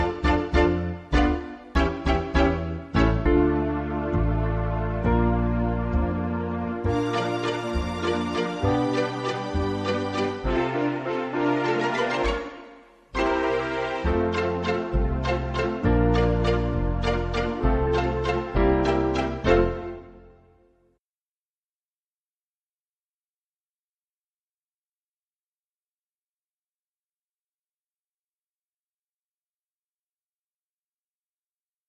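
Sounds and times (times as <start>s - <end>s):
musical accompaniment: 0.0s - 20.8s.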